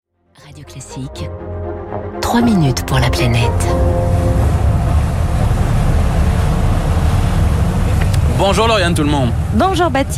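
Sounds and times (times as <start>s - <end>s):
speech: 0.4s - 4.6s, 8.4s - 10.1s
brief tonal hum: 0.7s - 8.3s
sea waves on an island: 2.3s - 10.1s
gusting wind on an island: 2.8s - 10.1s.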